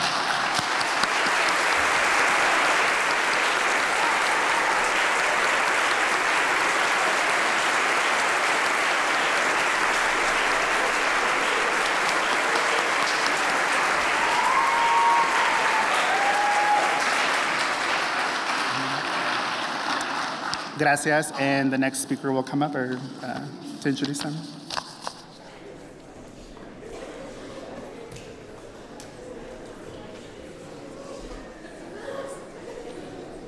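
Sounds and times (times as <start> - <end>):
audience applause: 0.0 - 20.9
speech: 20.8 - 24.6.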